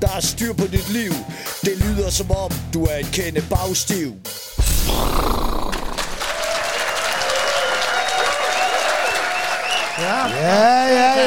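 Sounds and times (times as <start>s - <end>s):
speech: 0.0s - 5.6s, 10.0s - 11.2s
whistles: 4.8s - 10.6s
audience clapping at a show in Kolding: 5.7s - 10.6s
crowd cheering and calling out: 6.2s - 11.2s.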